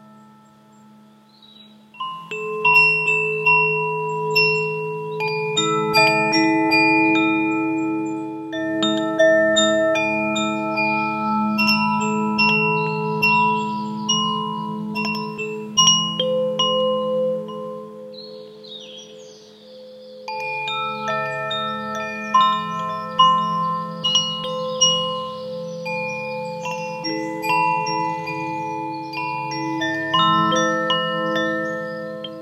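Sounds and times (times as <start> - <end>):
wind chimes ringing in a forest: 0.0 - 32.3.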